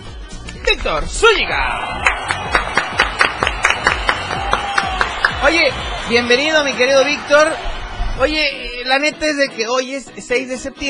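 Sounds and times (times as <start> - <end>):
speech: 0.7 - 2.4, 5.4 - 10.8
audience applause: 1.6 - 9.0.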